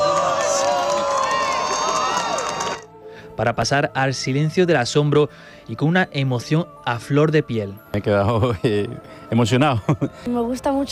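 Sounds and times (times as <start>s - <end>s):
crowd of spectators cheering before totality of a total solar eclipse: 0.0s - 2.9s
speech: 3.4s - 10.9s.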